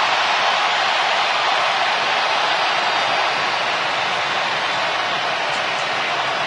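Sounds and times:
stadium crowd cheering in a frenzy: 0.0 - 6.4.

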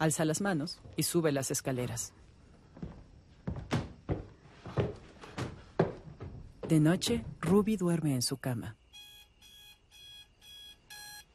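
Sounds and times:
speech: 0.0 - 2.3, 6.7 - 8.8
alarm clock ringing: 8.9 - 11.3.

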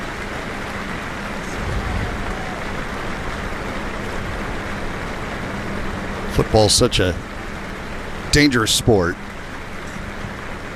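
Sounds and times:
stadium crowd applauding: 0.2 - 5.3
speech: 6.4 - 7.3, 8.3 - 9.3.

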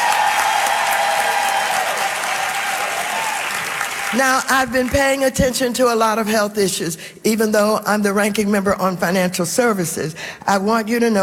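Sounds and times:
audience applause: 0.0 - 4.7
speech: 4.1 - 11.2.

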